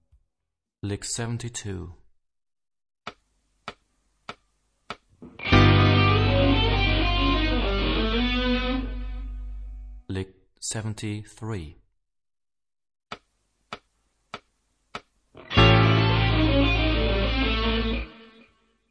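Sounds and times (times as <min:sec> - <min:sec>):
rock guitar: 0:05.3 - 0:09.7, 0:15.4 - 0:18.5.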